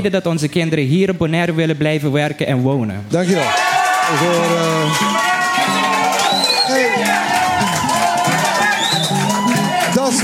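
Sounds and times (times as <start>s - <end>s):
speech: 0.0s - 5.7s
crowd cheering: 3.2s - 10.2s
excited shouts: 3.2s - 10.2s
large audience applauding: 3.2s - 10.2s.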